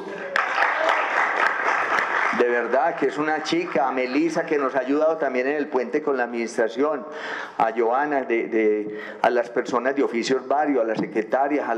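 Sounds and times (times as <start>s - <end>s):
audience applause: 0.0s - 5.0s
speech: 2.4s - 11.7s.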